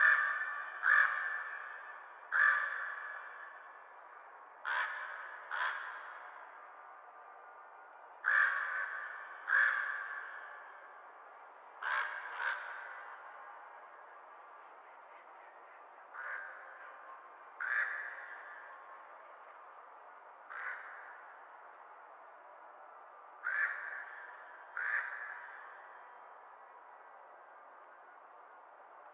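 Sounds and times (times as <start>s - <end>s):
crows cawing: 0.0s - 3.8s, 4.6s - 6.6s, 8.2s - 11.0s, 11.8s - 13.5s, 16.1s - 17.0s, 17.6s - 18.9s, 20.5s - 21.5s, 23.4s - 26.1s.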